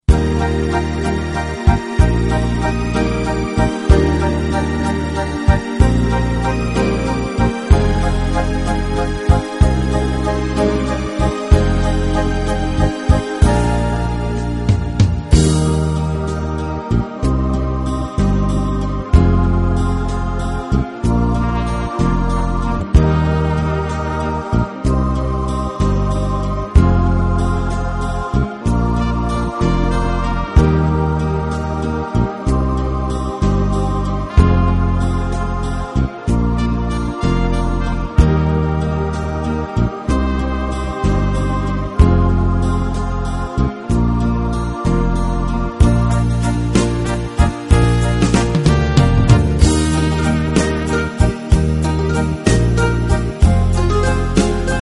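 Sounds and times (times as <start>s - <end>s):
harp: 0.1s - 54.8s.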